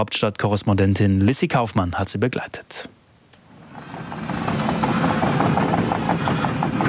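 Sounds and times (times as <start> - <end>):
speech: 0.0 - 3.0
excavators rolling at primary school construction site in Kernen im Remstal: 3.4 - 6.8.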